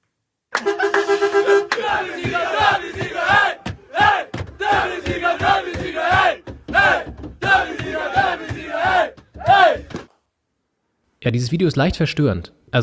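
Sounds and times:
football team roaring and shouting in bus: 1.4s - 10.0s
speech: 11.2s - 12.8s.

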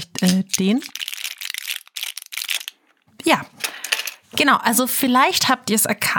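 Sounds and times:
speech: 0.0s - 1.0s, 3.3s - 3.6s, 4.3s - 6.1s
tablet blister pack crinkling: 0.0s - 3.1s.

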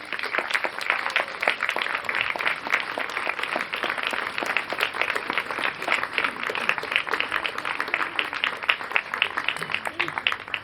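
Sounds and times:
welcome applause: 0.0s - 10.6s.

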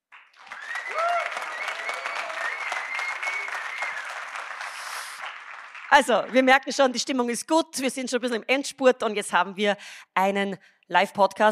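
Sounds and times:
live audience applauding: 0.0s - 6.5s
whoops and cheers: 0.4s - 4.2s
speech: 5.9s - 11.5s.

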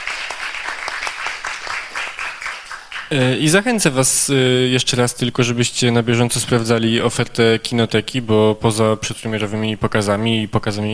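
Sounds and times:
cinema audience applause: 0.0s - 3.4s
speech: 3.1s - 10.9s.

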